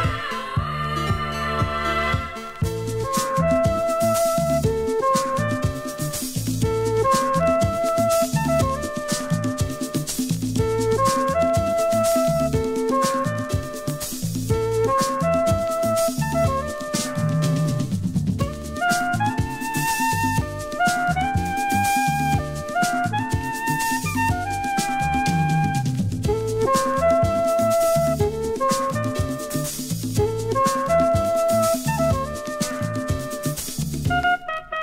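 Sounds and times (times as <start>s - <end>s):
Afro Cuban funky grooves: 1.1s - 34.8s.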